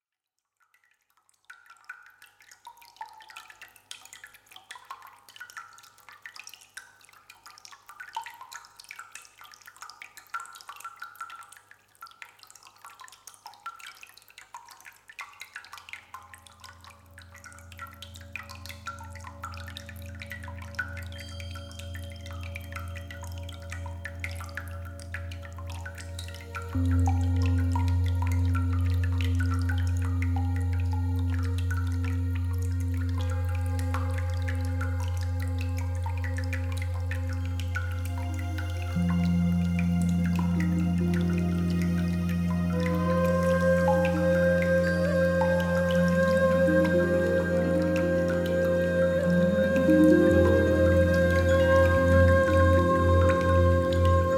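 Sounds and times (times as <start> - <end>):
music for yoga, meditation and relaxation: 15.8 - 54.3.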